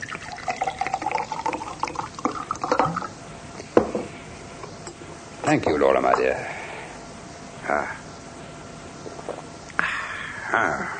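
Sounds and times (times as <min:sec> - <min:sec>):
drink being poured into a glass: 0:00.0 - 0:03.2
speech: 0:05.5 - 0:06.6, 0:07.7 - 0:08.0, 0:10.5 - 0:10.9.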